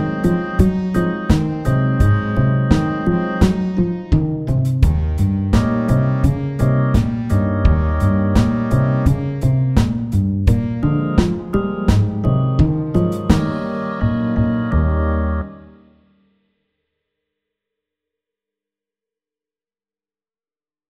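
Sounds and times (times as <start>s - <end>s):
walking bass: 0.0s - 15.8s.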